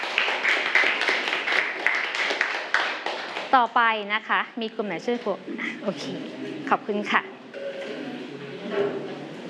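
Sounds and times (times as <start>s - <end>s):
classroom applause: 0.0s - 3.6s
speech: 3.5s - 7.3s, 8.8s - 9.1s.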